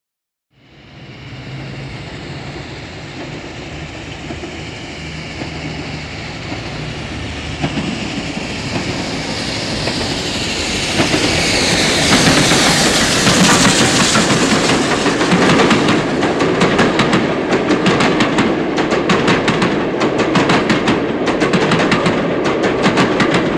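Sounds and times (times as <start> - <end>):
steam train: 0.6 - 23.5.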